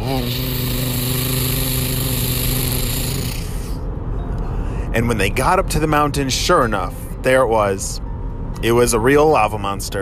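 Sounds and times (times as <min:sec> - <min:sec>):
voice imitating a monster truck engine: 0:00.0 - 0:03.8
speech: 0:05.0 - 0:10.0.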